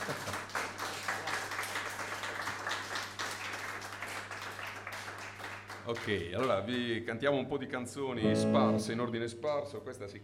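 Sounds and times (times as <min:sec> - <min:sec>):
audience applause: 0:00.0 - 0:06.3
speech: 0:05.8 - 0:10.2.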